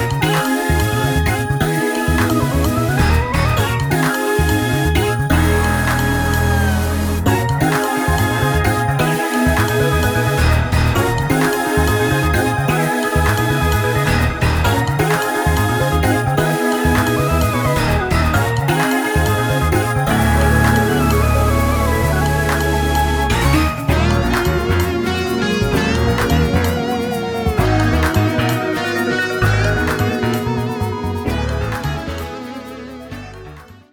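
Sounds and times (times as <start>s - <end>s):
drumless fusion music: 0.0s - 33.9s.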